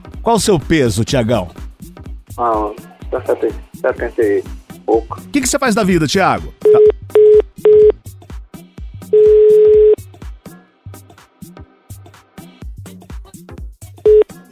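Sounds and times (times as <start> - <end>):
speech: 0.2 - 1.6, 2.4 - 6.8
telephone tones of a dropped phone line: 6.6 - 8.0, 9.1 - 10.0, 14.1 - 14.3.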